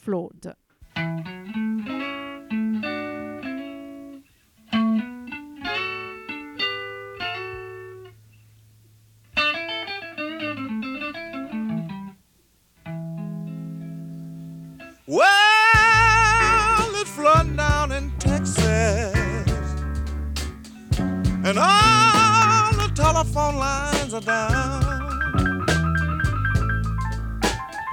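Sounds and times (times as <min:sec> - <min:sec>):
speech: 0:00.1 - 0:00.6
soft electric blues guitar: 0:00.8 - 0:08.2, 0:09.3 - 0:12.2, 0:12.8 - 0:27.9
bass line: 0:15.8 - 0:27.9.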